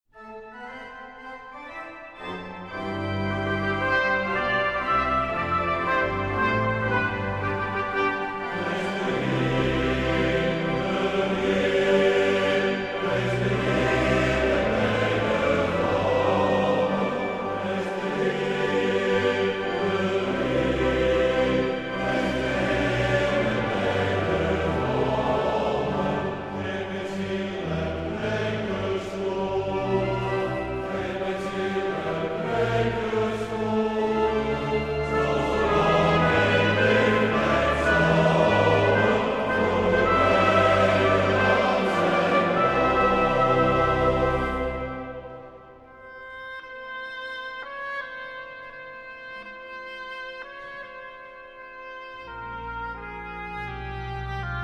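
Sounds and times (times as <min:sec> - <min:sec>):
male choir singing: 0:02.8 - 0:45.7.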